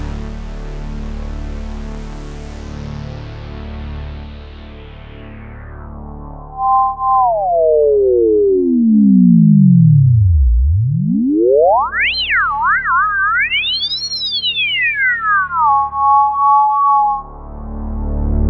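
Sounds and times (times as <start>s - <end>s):
Prophet 5 synthesizer through low-pass filter: 5.4s - 18.4s.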